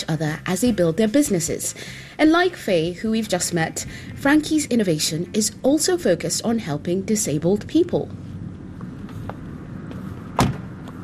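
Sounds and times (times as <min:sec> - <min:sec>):
speech: 0:00.0 - 0:08.3
low outdoor rumble: 0:00.0 - 0:11.0
faint clicks and shuffles: 0:08.1 - 0:11.0
car door closing: 0:10.3 - 0:10.8.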